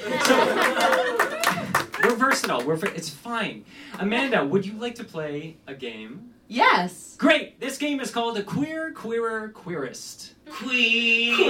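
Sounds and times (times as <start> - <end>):
laughter: 0.0 - 2.3, 10.5 - 11.4
audience clapping: 0.0 - 3.2
speech: 2.4 - 11.4.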